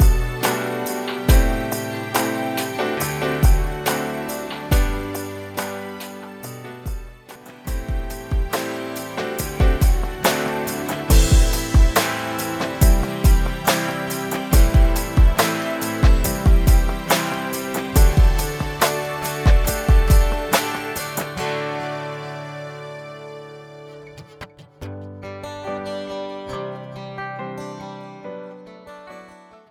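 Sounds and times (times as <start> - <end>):
karaoke singing: 0.0 - 6.3, 7.7 - 22.4.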